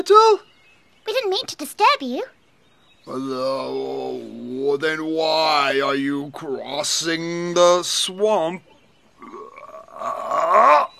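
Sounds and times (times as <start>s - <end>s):
speech: 0.0s - 2.4s, 3.0s - 9.4s
voice imitating a frog's loud croak: 9.2s - 10.9s.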